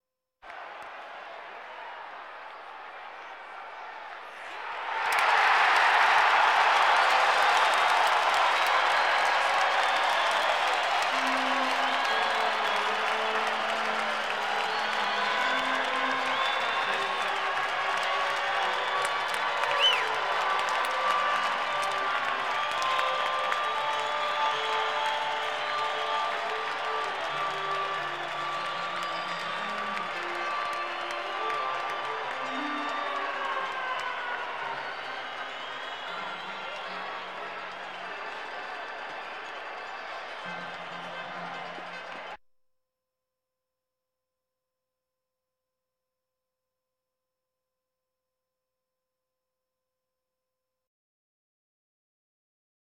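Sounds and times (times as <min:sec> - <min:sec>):
sports crowd: 0:00.4 - 0:42.4.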